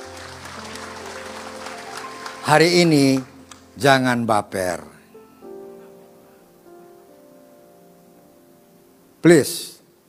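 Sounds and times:
audience applauding: 0.0 - 4.1
speech: 2.5 - 4.9, 9.2 - 9.7.

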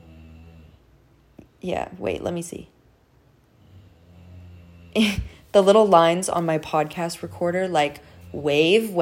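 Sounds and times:
bulldog snoring: 0.0 - 1.0, 3.5 - 8.9
speech: 1.6 - 2.7, 5.0 - 8.9.

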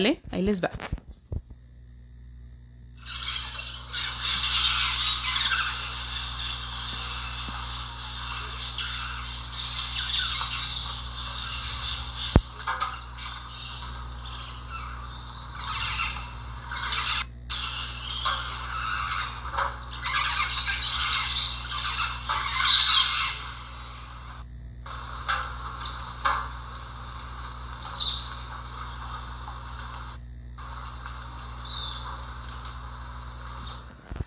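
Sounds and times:
speech: 0.0 - 1.0
many animals in a tropical forest at dawn: 3.0 - 34.2.

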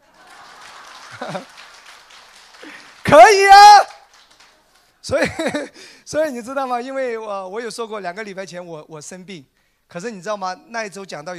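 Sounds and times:
laughter: 0.0 - 1.8, 5.1 - 5.8
audience applause: 0.0 - 4.9
speech: 1.1 - 1.6, 2.6 - 4.0, 5.1 - 11.3.

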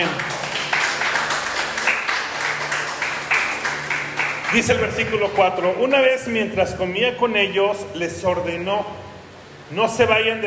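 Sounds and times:
audience applauding: 0.0 - 5.4
speech: 4.5 - 9.0, 9.7 - 10.4.

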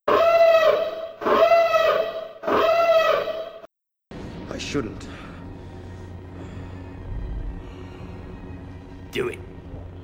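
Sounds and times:
spoiler siren sound effect: 0.1 - 3.7
speech: 4.7 - 5.3, 9.2 - 9.5.

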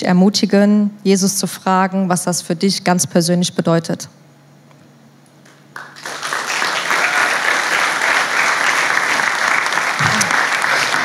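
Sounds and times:
speech: 0.0 - 4.3
audience applause: 5.8 - 11.0.

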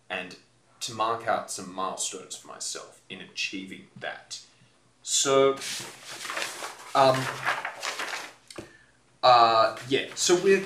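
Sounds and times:
speech: 0.2 - 7.6, 9.2 - 10.6
large sheet of paper rustling and crinkling: 5.5 - 8.7, 9.6 - 10.6.

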